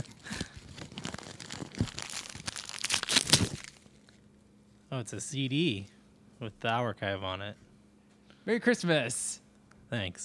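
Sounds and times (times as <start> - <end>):
tearing of tape on a Christmas present: 0.0 - 3.9
Christmas present wrapping paper crinkling: 0.0 - 4.1
speech: 4.9 - 7.6, 8.5 - 10.2.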